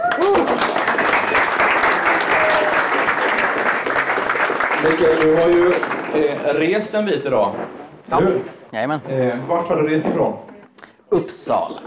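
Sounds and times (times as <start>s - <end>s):
audience applause: 0.0s - 6.7s
speech: 4.8s - 10.5s, 11.3s - 11.8s.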